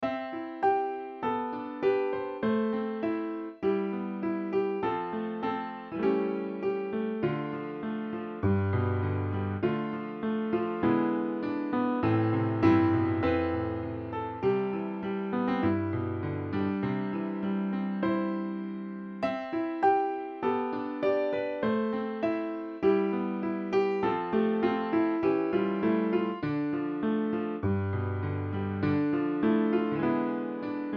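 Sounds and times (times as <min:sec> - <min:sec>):
piano: 0:00.0 - 0:30.9.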